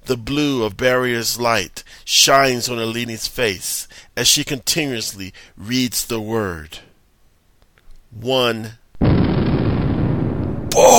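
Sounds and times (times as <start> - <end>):
speech: 0.1 - 6.9, 8.1 - 8.8, 10.8 - 10.9
explosion blast sound effect: 9.0 - 10.9.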